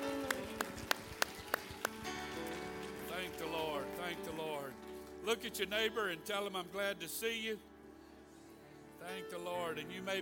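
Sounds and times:
audience clapping hands: 0.0 - 5.6
speech: 5.2 - 7.7, 9.1 - 10.2.

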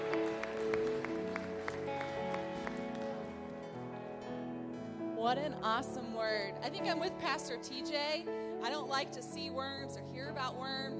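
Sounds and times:
crowd clapping in rhythm: 0.0 - 3.8
keyboard or organ chords: 0.0 - 10.9
speech: 5.2 - 10.9.

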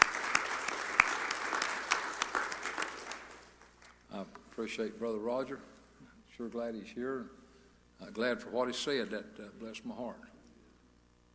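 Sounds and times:
audience applause: 0.0 - 4.0
speech: 4.6 - 5.8, 6.4 - 7.4, 8.0 - 10.3.

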